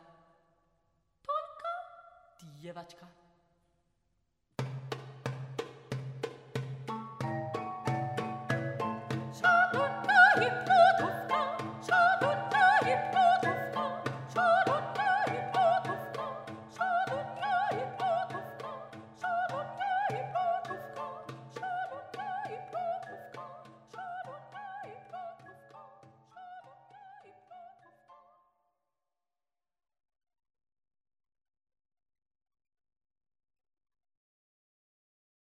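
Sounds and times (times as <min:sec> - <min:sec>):
instrumental ensemble: 0:04.6 - 0:24.3
soprano singing: 0:07.2 - 0:28.2.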